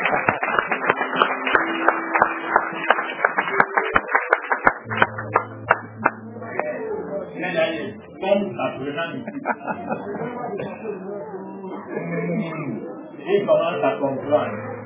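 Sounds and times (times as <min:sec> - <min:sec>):
laughter: 0:00.0 - 0:01.8, 0:08.4 - 0:11.5
crowd clapping: 0:00.0 - 0:06.8
low sustained tone: 0:04.9 - 0:12.1
speech: 0:13.4 - 0:14.8.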